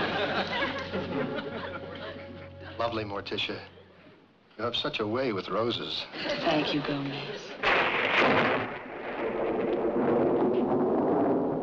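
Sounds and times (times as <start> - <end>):
laughter: 0.0 - 2.9, 6.1 - 7.6
speech: 0.4 - 1.9, 2.8 - 3.8, 4.6 - 8.6
peal of thunder: 7.6 - 11.6.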